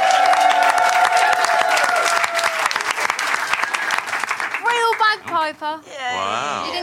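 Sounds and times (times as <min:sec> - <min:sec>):
audience cheering: 0:00.0 - 0:04.6
audience applause: 0:00.0 - 0:05.2
speech: 0:05.5 - 0:06.8.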